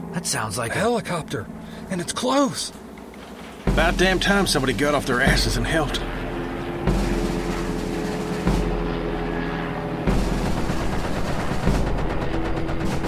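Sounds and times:
speech: 0.2s - 2.8s, 3.7s - 6.2s
gunfire: 6.8s - 9.2s, 10.1s - 13.0s.

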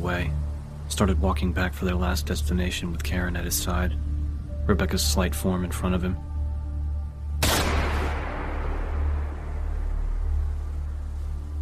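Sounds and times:
speech: 0.0s - 4.0s, 4.7s - 6.3s
steady low hum: 0.0s - 11.6s
Beretta pistol gunshot in an audio drama: 7.4s - 9.6s.

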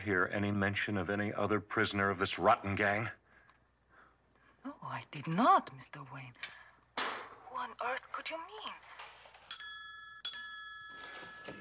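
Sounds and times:
speech: 0.0s - 3.2s, 4.6s - 6.6s, 7.6s - 9.0s
bell rung to summon tea: 9.5s - 11.5s.

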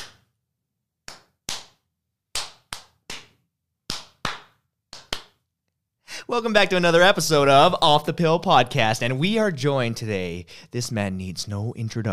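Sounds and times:
group hand claps: 1.1s - 1.8s, 2.4s - 5.4s
speech: 6.3s - 12.1s.

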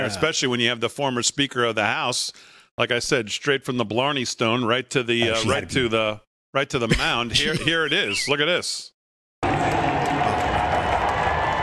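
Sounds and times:
speech: 0.0s - 8.9s
small ballpark crowd applauding: 9.4s - 11.6s.

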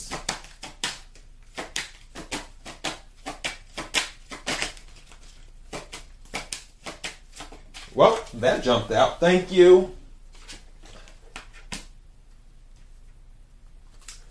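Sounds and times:
playing cards being shuffled and drawn: 0.1s - 9.4s, 10.3s - 12.0s
speech: 7.9s - 10.0s.

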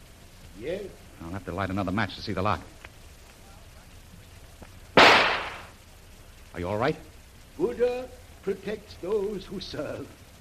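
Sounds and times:
speech: 0.6s - 2.8s, 6.6s - 10.2s
gunshot fired to blast an old lock off a metal door: 5.0s - 5.7s.

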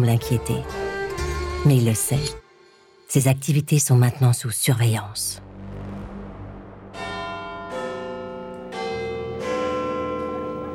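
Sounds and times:
speech: 0.0s - 0.9s, 1.6s - 2.4s, 3.1s - 5.4s
Big Ben clock tower bells chiming: 7.0s - 10.7s.

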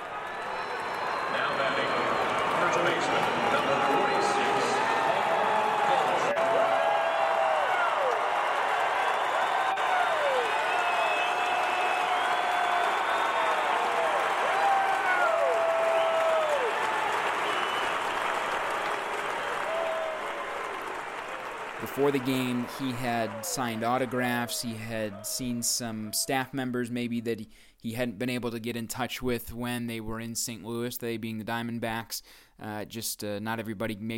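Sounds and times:
stadium crowd applauding a batter: 0.0s - 26.4s
speech: 22.0s - 34.1s.

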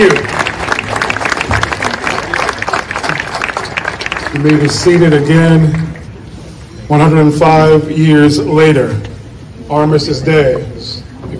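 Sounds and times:
speech: 0.0s - 0.4s, 4.4s - 5.8s, 6.9s - 9.1s, 9.7s - 10.7s
audience applause: 0.0s - 5.2s.

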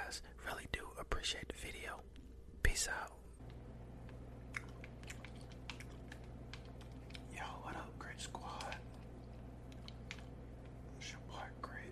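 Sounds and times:
low steady hum: 0.0s - 11.9s
speech: 1.0s - 2.2s, 2.8s - 3.2s
gum chewing: 3.4s - 11.0s.

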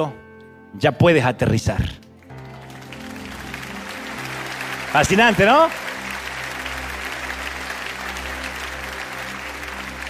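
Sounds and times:
speech: 0.0s - 2.0s, 4.9s - 5.8s
audience clapping: 2.2s - 10.0s.

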